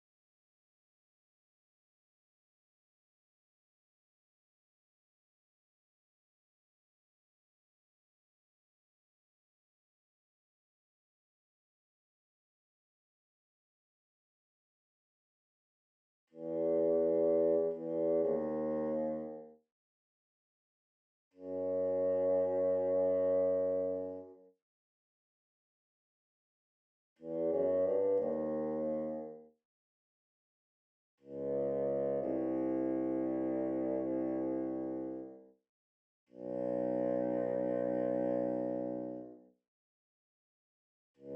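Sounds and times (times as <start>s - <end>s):
bassoon: 16.4s - 19.5s, 21.4s - 24.3s, 27.2s - 29.4s, 31.3s - 35.4s, 36.4s - 39.4s.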